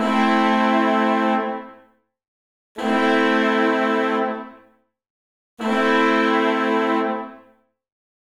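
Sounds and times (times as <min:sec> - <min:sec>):
horns playing in A minor at 170 BPM: 0:00.0 - 0:01.7, 0:02.8 - 0:04.6, 0:05.6 - 0:07.4.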